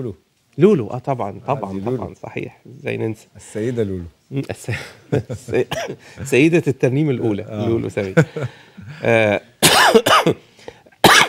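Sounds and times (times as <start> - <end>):
speech: 0.0 - 10.5
person with a cold coughing: 5.7 - 6.0, 9.6 - 10.4, 11.0 - 11.2.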